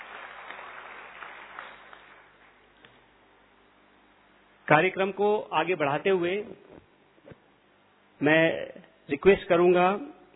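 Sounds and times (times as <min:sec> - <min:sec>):
audience applause: 0:00.0 - 0:02.6
speech: 0:04.7 - 0:06.9, 0:08.2 - 0:10.2.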